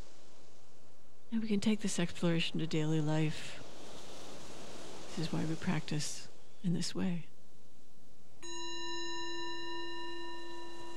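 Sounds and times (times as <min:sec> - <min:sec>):
speech: 0:01.3 - 0:03.6, 0:05.2 - 0:07.3
meditation bell: 0:08.4 - 0:10.9.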